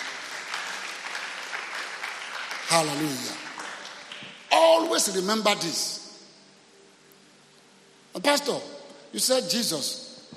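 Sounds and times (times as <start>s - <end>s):
audience clapping hands: 0.0s - 5.1s
speech: 2.7s - 3.4s, 4.5s - 6.0s, 8.2s - 10.1s.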